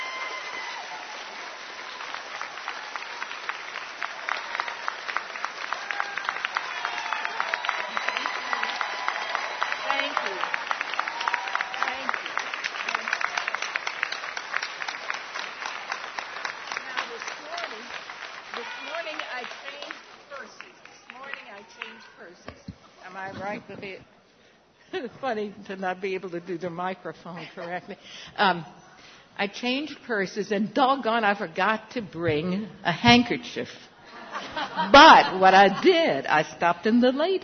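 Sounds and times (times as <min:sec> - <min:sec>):
sustained applause from a sizable audience: 0:00.0 - 0:22.3
speech: 0:23.6 - 0:24.1, 0:25.0 - 0:28.8, 0:29.4 - 0:33.8, 0:34.8 - 0:37.4.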